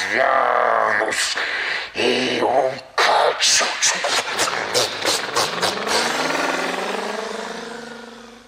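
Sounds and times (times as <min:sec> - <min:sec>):
speech: 0:00.1 - 0:05.0
truck engine driving away: 0:05.2 - 0:08.4.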